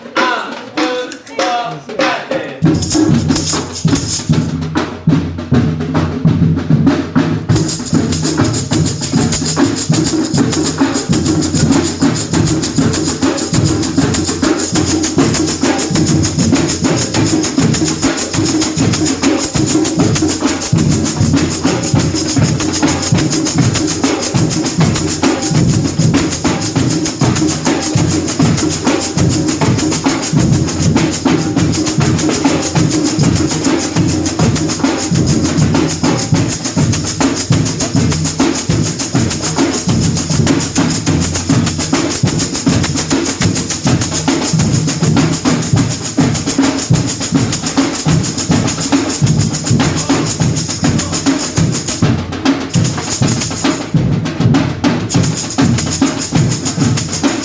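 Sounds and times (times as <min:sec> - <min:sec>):
baiao ensemble playing tutti: 0:00.0 - 0:57.4.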